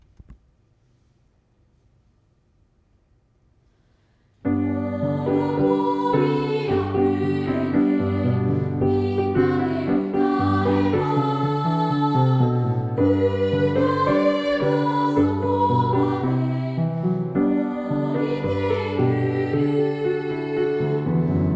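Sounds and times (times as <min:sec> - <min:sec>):
chorus singing: 0:04.5 - 0:21.5.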